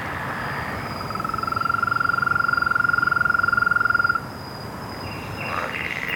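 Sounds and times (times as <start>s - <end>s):
frogs trilling: 0.8s - 4.2s, 5.1s - 6.1s.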